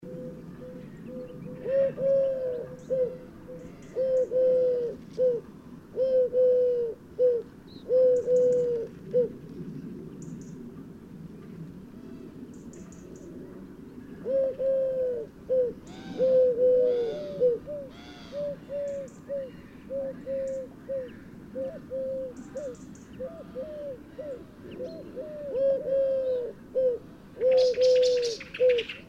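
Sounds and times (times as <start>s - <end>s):
Eurasian collared dove Streptopelia decaocto cooing: 0.0s - 10.4s, 13.0s - 29.0s.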